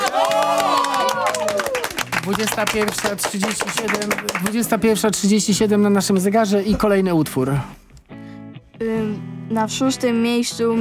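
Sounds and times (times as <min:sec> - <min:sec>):
applause: 0:00.0 - 0:04.7
speech: 0:02.3 - 0:07.8, 0:08.8 - 0:10.7.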